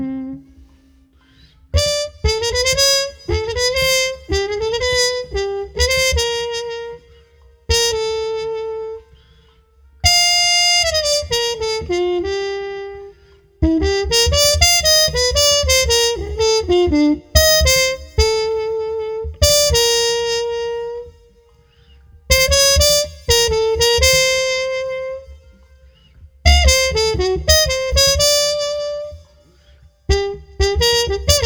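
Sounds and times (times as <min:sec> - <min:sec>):
muted street trumpet playing: 0:00.0 - 0:01.1, 0:01.7 - 0:09.3, 0:10.0 - 0:31.4.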